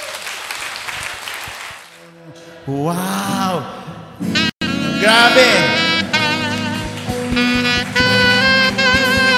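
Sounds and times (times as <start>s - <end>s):
audience applause: 0.0s - 2.0s, 6.5s - 9.2s
speech: 2.6s - 5.8s.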